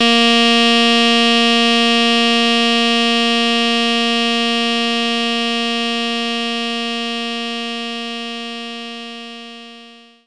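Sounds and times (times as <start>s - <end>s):
alto saxophone note Bb3: 0.0s - 10.0s.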